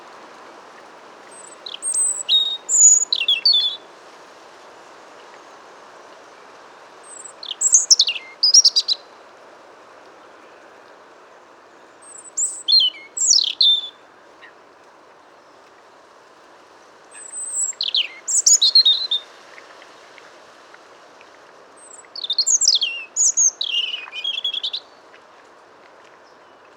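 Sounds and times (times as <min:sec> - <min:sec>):
soft steady hiss: 0:00.0 - 0:26.7
European robin singing: 0:01.3 - 0:03.8, 0:07.1 - 0:09.1, 0:12.0 - 0:14.0, 0:17.2 - 0:19.3, 0:21.8 - 0:25.0.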